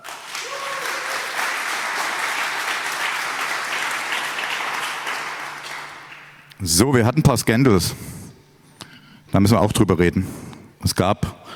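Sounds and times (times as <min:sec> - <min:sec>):
audience applause: 0:00.0 - 0:06.5
speech: 0:06.6 - 0:08.2, 0:09.4 - 0:11.5.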